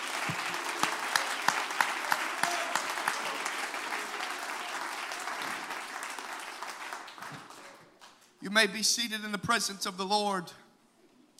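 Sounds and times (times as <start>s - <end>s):
audience clapping hands in praise: 0.0s - 8.4s
speech: 8.5s - 10.6s.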